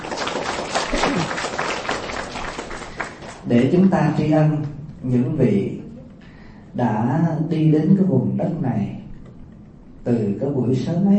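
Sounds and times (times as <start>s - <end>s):
audience applause at a Buddhist temple honouring its founders: 0.0s - 3.4s
speech: 3.5s - 5.8s, 6.8s - 9.0s, 10.0s - 11.1s.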